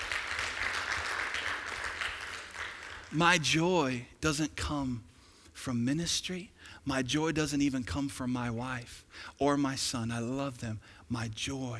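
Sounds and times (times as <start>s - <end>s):
crowd applause: 0.0s - 3.4s
speech: 3.1s - 11.7s.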